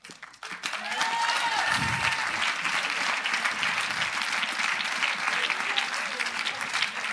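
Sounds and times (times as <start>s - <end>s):
audience applause: 0.0s - 7.1s
cheers and whistles: 0.7s - 2.8s.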